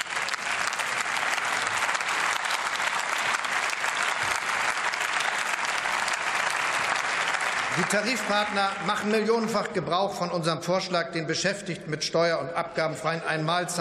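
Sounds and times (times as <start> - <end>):
applause from the CDU in parliament: 0.0 - 9.7
speech: 7.8 - 13.7.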